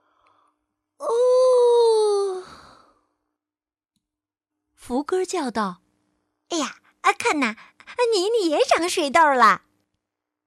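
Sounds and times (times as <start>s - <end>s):
person imitating a big yawn: 1.0s - 3.0s
speech: 4.9s - 5.8s, 6.5s - 9.6s.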